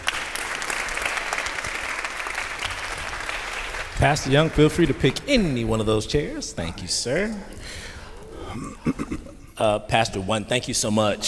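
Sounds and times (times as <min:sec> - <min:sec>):
audience applause: 0:00.0 - 0:05.6
speech: 0:04.0 - 0:07.9, 0:08.6 - 0:11.2.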